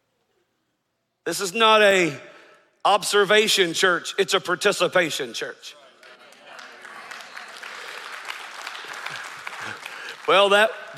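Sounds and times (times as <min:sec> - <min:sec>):
speech: 0:01.3 - 0:05.8, 0:10.3 - 0:10.9
audience clapping: 0:05.8 - 0:10.9.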